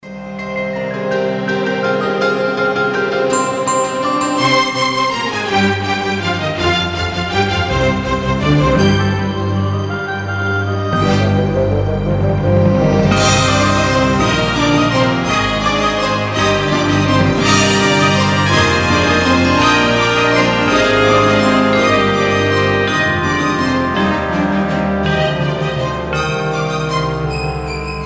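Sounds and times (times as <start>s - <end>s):
classical carol: 0.0s - 28.0s.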